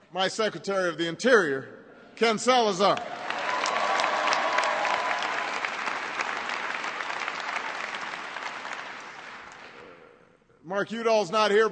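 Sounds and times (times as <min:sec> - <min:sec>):
speech: 0:00.1 - 0:03.2, 0:10.7 - 0:11.7
crowd applauding: 0:02.9 - 0:09.9.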